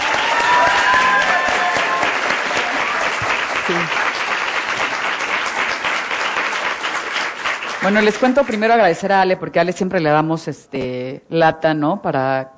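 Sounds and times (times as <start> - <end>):
audience applause: 0.0 - 8.8
speech: 7.8 - 12.5.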